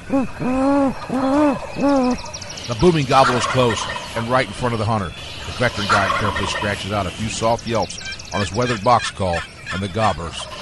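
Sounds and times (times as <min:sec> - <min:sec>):
man imitating a great horned owl's hoot: 0:00.0 - 0:02.3
speech: 0:00.1 - 0:10.5.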